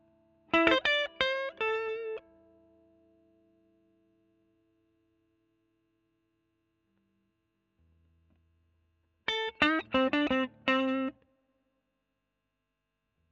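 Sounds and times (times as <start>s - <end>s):
overdriven electric guitar: 0.5s - 2.3s, 9.3s - 11.2s.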